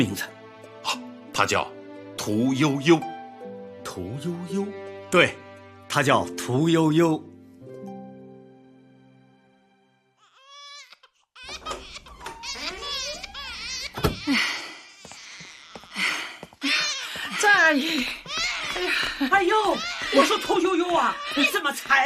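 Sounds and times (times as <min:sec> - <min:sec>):
speech: 0:00.0 - 0:00.3, 0:01.4 - 0:03.1, 0:04.0 - 0:07.3
hungry baby wailing at a nursery at feeding time: 0:10.2 - 0:22.0.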